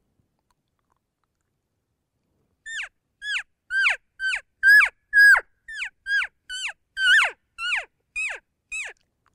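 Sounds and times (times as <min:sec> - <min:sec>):
lost calf cry, high-pitched mew: 0:02.8 - 0:09.0.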